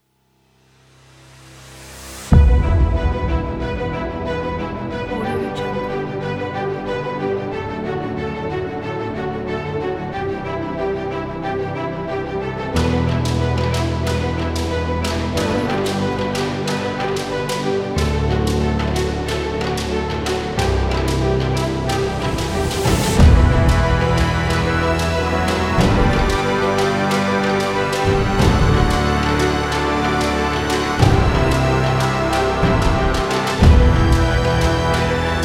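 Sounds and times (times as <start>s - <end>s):
cinematic motivational trailer music: 0.5s - 35.4s.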